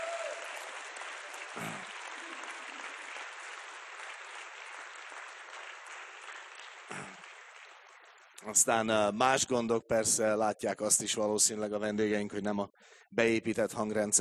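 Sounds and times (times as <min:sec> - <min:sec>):
audience clapping: 0:00.0 - 0:09.2
speech: 0:01.6 - 0:01.9, 0:08.5 - 0:14.1.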